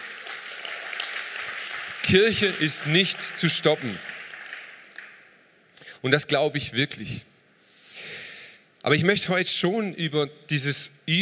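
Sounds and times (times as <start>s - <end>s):
audience applauding: 0.0s - 5.4s
speech: 2.1s - 4.1s, 6.0s - 7.3s, 8.8s - 11.2s.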